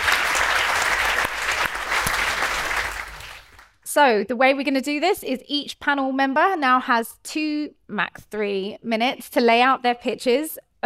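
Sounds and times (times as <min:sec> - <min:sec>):
audience applause welcoming a panel of speakers: 0:00.0 - 0:03.8
speech: 0:04.0 - 0:10.8.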